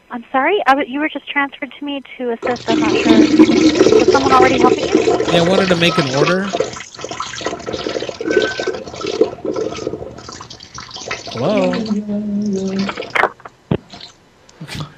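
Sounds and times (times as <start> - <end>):
speech: 0.1 - 6.6, 11.4 - 13.0
looping toilet flush from a soundboard: 2.4 - 11.9.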